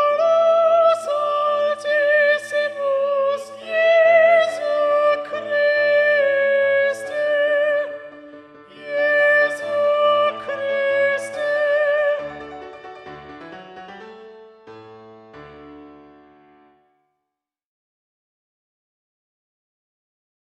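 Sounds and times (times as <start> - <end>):
soprano singing: 0.0 - 14.2.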